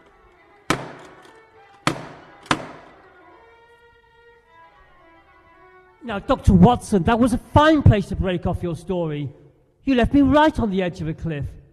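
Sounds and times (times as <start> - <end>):
door being broken in: 0.7 - 3.0
speech: 6.0 - 11.6.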